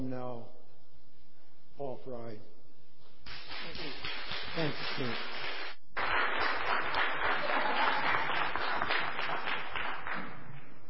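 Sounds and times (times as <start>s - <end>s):
speech: 0.0s - 0.6s, 1.8s - 2.6s, 4.6s - 5.3s
audience applauding: 3.3s - 10.8s.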